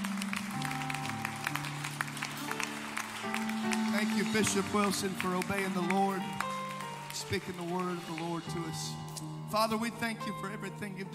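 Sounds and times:
audience clapping hands: 0.0s - 9.2s
speech: 4.3s - 6.4s, 7.2s - 11.1s.

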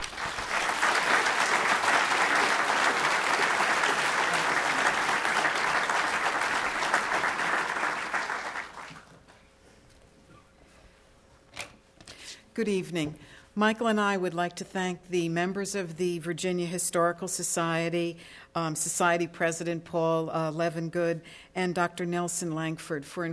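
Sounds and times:
audience applause at a historical society evening talk: 0.0s - 9.2s
speech: 12.6s - 23.3s.

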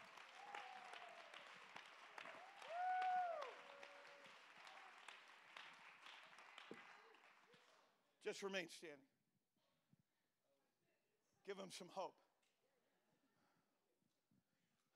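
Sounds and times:
audience clapping hands: 0.0s - 7.8s
speech: 8.2s - 9.1s, 11.4s - 12.2s.

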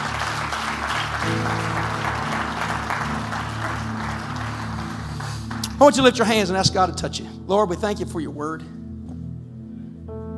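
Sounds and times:
audience clapping hands: 0.0s - 6.7s
speech: 5.8s - 8.8s.

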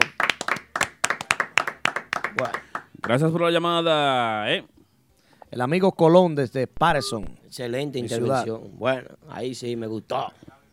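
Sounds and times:
fast hand clapping: 0.0s - 3.2s
speech: 2.4s - 4.7s, 5.5s - 10.4s.

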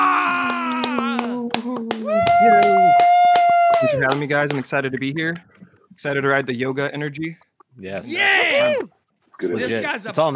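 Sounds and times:
audience clapping hands: 0.0s - 4.8s
speech: 4.0s - 10.3s.

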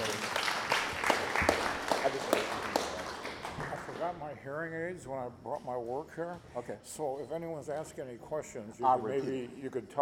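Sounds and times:
small audience applause: 0.0s - 4.1s
speech: 4.4s - 9.9s.

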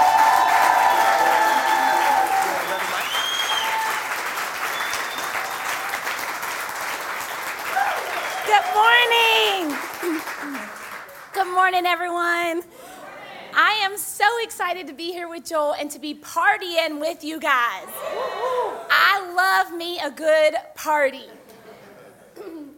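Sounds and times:
church congregation whooping and cheering: 0.0s - 6.2s, 7.6s - 10.6s, 18.0s - 18.9s
church congregation applauding a visiting pastor couple: 0.0s - 11.4s
speech: 11.7s - 12.8s, 13.8s - 21.4s.

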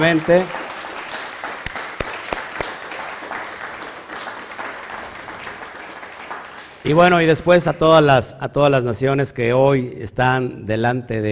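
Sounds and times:
speech: 0.0s - 0.6s, 6.8s - 11.3s
audience applause: 0.0s - 7.2s.

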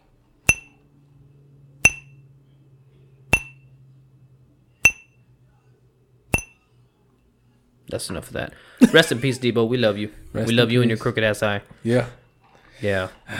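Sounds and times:
glass flicked like a tolling bell: 0.5s - 0.8s, 1.8s - 2.2s, 3.3s - 3.7s, 4.8s - 5.2s, 6.4s - 6.6s
speech: 7.9s - 12.2s, 12.8s - 13.3s.

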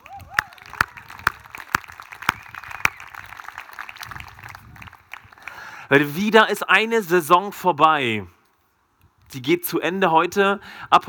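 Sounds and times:
audience applause: 0.0s - 5.8s
speech: 5.9s - 8.4s, 9.3s - 11.0s.

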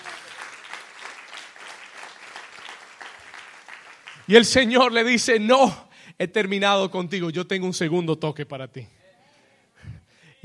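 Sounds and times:
audience applause: 0.0s - 4.7s
speech: 4.3s - 9.0s.

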